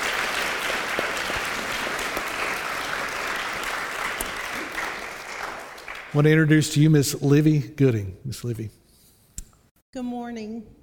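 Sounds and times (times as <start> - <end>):
crowd applause: 0.0 - 6.9
speech: 6.1 - 8.8, 10.0 - 10.8.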